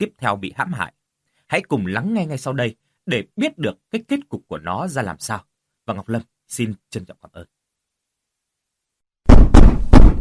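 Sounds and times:
speech: 0.0 - 7.6
knocking on a door: 9.3 - 10.2.

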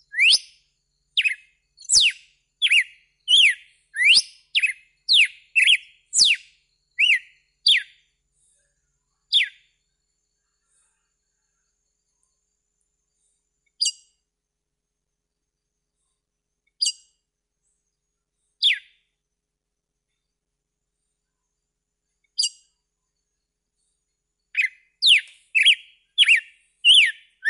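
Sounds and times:
red-cowled cardinal whistled song: 0.0 - 8.0, 9.4 - 9.6, 18.6 - 18.9, 24.6 - 27.4.

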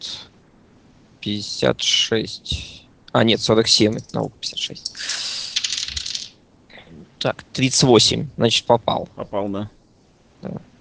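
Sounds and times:
speech: 1.2 - 5.2, 7.2 - 9.8, 10.4 - 10.7
dice rolling on a table for a tabletop role-playing game: 5.5 - 6.4.

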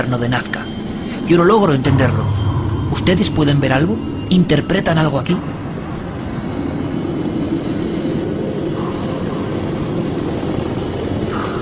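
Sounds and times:
speech: 0.0 - 0.7, 1.3 - 5.7
helicopter engine and rotor in flight over the Nazca ground figures: 0.1 - 1.2, 5.7 - 11.5.

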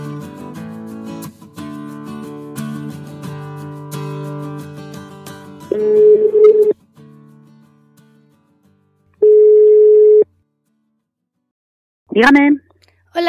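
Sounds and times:
telephone dialing tones: 5.8 - 6.7, 9.2 - 10.2
speech: 12.2 - 12.6.

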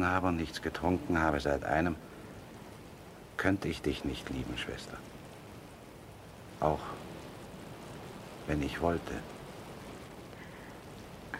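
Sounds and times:
speech: 0.0 - 2.2, 3.4 - 5.2, 6.6 - 7.1, 8.5 - 9.3
rain falling: 0.0 - 11.3.

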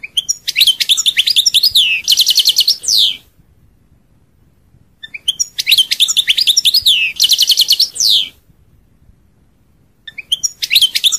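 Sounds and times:
European goldfinch twittering song: 0.0 - 3.3, 5.0 - 8.4, 10.0 - 11.1.

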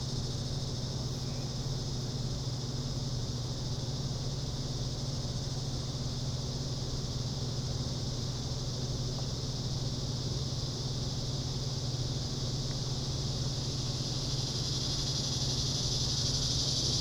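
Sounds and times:
loud summer cicada chorus: 0.0 - 16.9.

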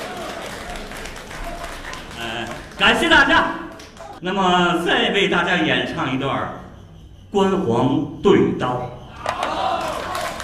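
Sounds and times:
audience applause at a Beijing traditional opera and folk-art performance: 0.0 - 4.2, 9.4 - 10.4
speech: 2.8 - 3.6, 4.2 - 6.6, 7.3 - 8.9.

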